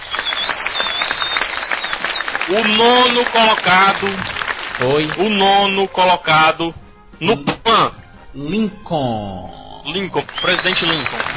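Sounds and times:
high whistle-like tone: 0.0 - 3.1, 10.3 - 11.3
round of applause: 0.0 - 6.0, 10.2 - 11.3
speech: 2.5 - 11.3.

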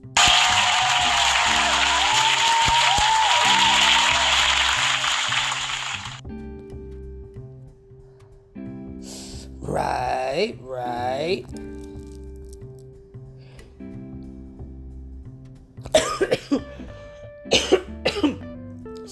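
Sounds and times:
applause: 0.0 - 6.2
low steady musical bed: 0.1 - 19.1.

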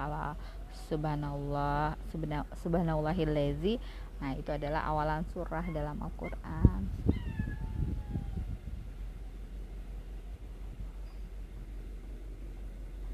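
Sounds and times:
low rumble: 0.0 - 13.1
speech: 0.8 - 7.2
pet cat meowing: 7.1 - 8.5.

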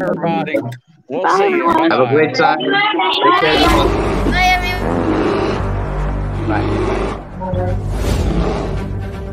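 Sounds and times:
speech: 0.0 - 5.0, 6.5 - 8.6
grizzly bear roaring: 3.4 - 7.4, 8.0 - 9.0.

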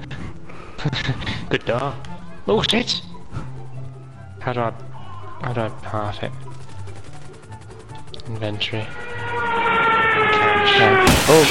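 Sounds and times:
speech: 0.8 - 3.1, 4.4 - 6.5, 8.3 - 11.5
helicopter crashing down in a video game: 8.3 - 11.5.

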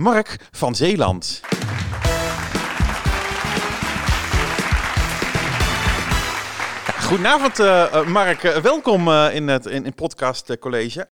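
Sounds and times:
speech: 0.0 - 1.5, 7.1 - 11.1
audience applause: 1.4 - 9.3.

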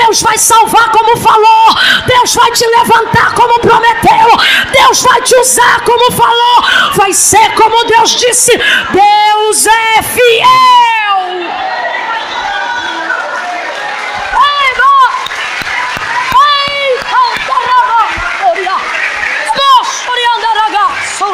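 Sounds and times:
speech: 0.1 - 11.7
audience clapping hands: 12.5 - 21.3.

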